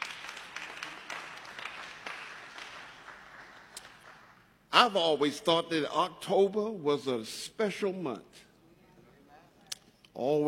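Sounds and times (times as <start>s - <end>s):
audience applauding: 0.0s - 4.6s
speech: 4.8s - 8.4s, 10.2s - 10.4s.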